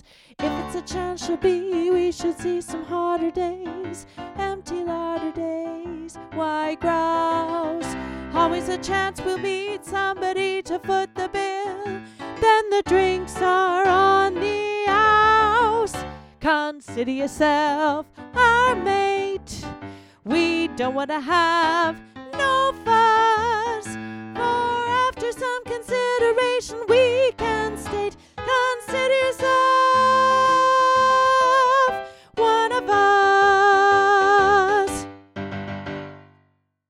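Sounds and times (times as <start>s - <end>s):
soprano singing: 0.0s - 35.2s.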